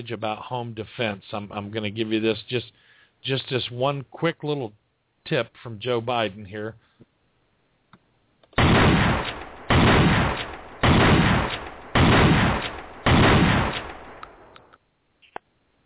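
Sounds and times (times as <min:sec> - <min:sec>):
speech: 0:00.0 - 0:07.1
12-gauge pump shotgun firing: 0:08.6 - 0:14.6.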